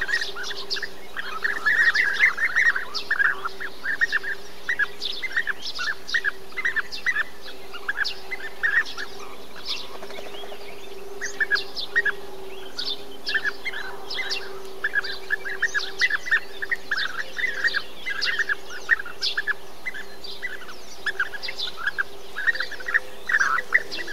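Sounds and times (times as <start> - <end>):
several bee-eaters calling together: 0.0 - 24.1.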